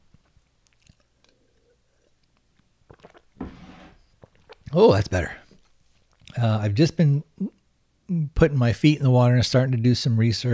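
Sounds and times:
person taking a drink with gulps: 0:00.1 - 0:06.4
speech: 0:04.7 - 0:05.4, 0:06.4 - 0:07.3, 0:08.4 - 0:10.5.

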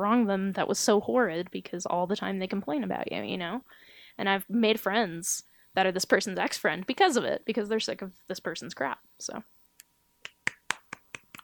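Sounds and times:
speech: 0:00.0 - 0:09.6
hand clapping: 0:10.2 - 0:11.4.

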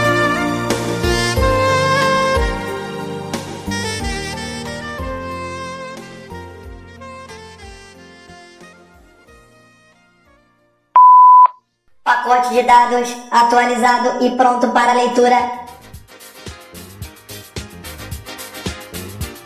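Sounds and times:
music: 0:00.0 - 0:10.9, 0:14.8 - 0:19.4
phone line message electronic beep: 0:11.0 - 0:11.5
speech: 0:12.4 - 0:15.7.

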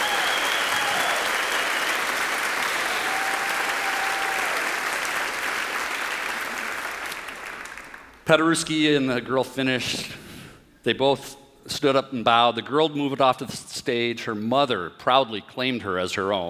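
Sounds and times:
audience applauding wildly: 0:00.0 - 0:08.2
speech: 0:08.3 - 0:10.2, 0:10.8 - 0:16.4.

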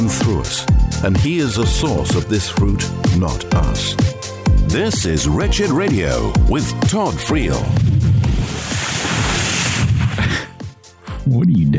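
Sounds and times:
speech: 0:00.0 - 0:07.9, 0:11.2 - 0:11.7
whoosh effect of pendulum swinging: 0:07.5 - 0:10.3.

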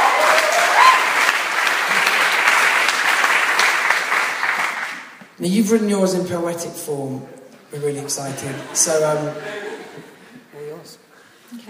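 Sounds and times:
audience applause: 0:00.0 - 0:05.2
speech: 0:05.4 - 0:09.6
laughter: 0:08.0 - 0:10.5.

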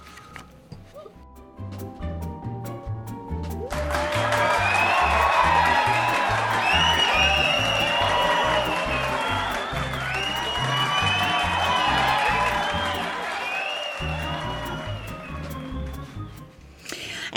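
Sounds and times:
cheering crowd of fans: 0:03.7 - 0:16.2.

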